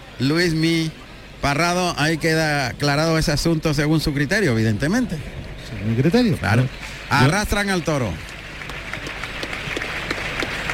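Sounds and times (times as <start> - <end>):
speech: 0.2 - 8.4
audience ovation applause at bullfight: 5.8 - 10.7.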